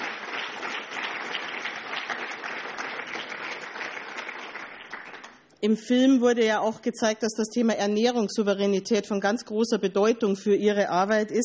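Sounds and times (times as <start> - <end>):
audience applause: 0.0 - 5.4
speech: 5.6 - 11.4.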